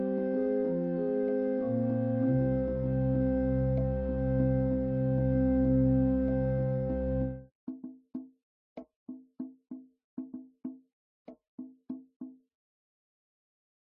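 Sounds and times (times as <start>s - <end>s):
organ: 0.0s - 7.4s.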